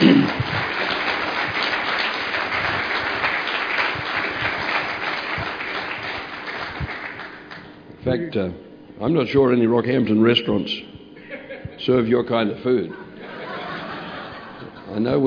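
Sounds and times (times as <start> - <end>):
audience applause welcoming a guest on stage: 0.0 - 7.6
speech: 8.1 - 10.9, 11.8 - 13.0, 14.9 - 15.2
laughter: 11.2 - 12.0, 12.8 - 15.2.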